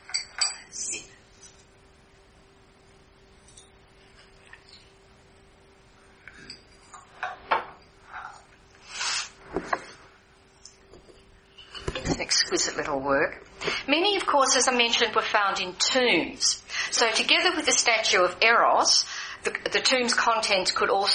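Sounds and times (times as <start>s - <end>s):
glass and dishware clinking: 0.0s - 0.7s, 10.9s - 12.3s
speech: 12.5s - 21.1s.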